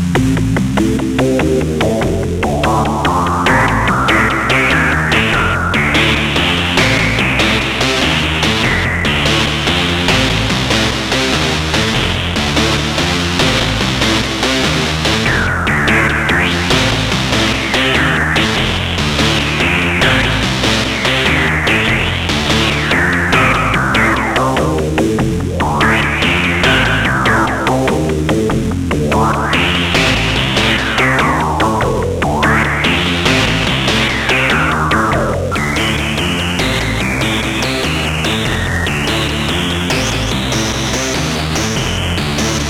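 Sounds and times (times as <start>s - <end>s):
musical riff: 0.1s - 42.6s.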